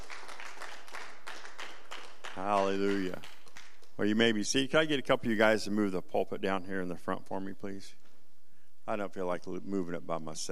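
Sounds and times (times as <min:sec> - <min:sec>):
audience clapping: 0:00.0 - 0:04.5
speech: 0:02.4 - 0:03.4, 0:04.0 - 0:08.0, 0:08.8 - 0:10.5.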